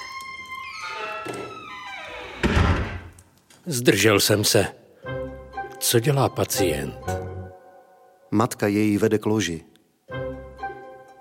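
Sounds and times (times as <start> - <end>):
door swinging open on a squeaky hinge: 0.0 - 3.3
door thunk: 2.4 - 3.1
speech: 3.7 - 4.8, 5.9 - 7.2, 8.3 - 9.7.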